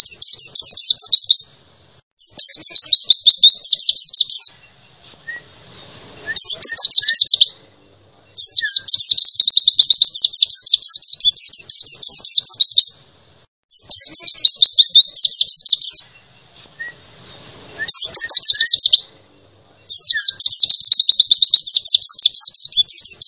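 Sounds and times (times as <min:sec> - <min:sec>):
white-eye chirping song: 0:00.0 - 0:23.2.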